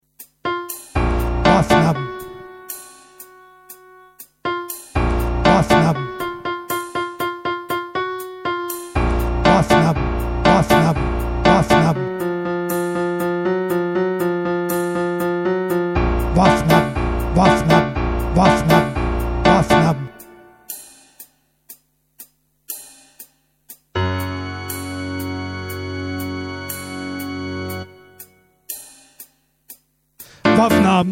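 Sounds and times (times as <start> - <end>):
bass instruments: 0.2 - 2.5, 4.6 - 6.9, 9.0 - 20.4, 24.0 - 28.3, 30.2 - 31.1.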